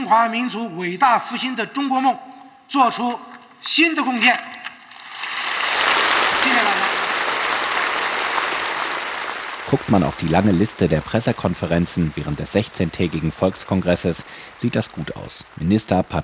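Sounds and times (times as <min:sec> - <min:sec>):
speech: 0:00.1 - 0:04.5, 0:09.7 - 0:16.2
parliament applause: 0:04.2 - 0:16.2.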